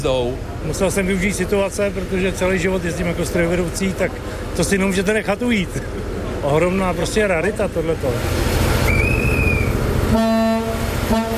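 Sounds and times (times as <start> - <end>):
speech: 0.0 - 9.1
running locomotive low rumble: 0.0 - 11.3
historic diesel train horn toots: 10.1 - 11.3.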